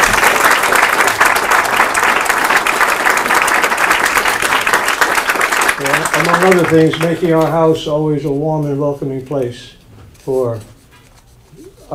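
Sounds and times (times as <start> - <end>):
audience applause: 0.0 - 7.5
speech: 6.4 - 10.7.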